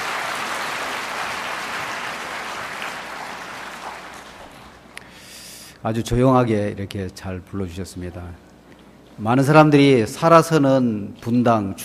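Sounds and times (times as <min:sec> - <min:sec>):
audience applause: 0:00.0 - 0:04.8
speech: 0:05.8 - 0:08.4, 0:09.2 - 0:11.8.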